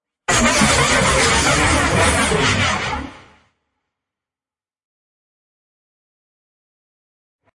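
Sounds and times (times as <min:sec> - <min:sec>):
storm stinger: 0:00.3 - 0:03.4.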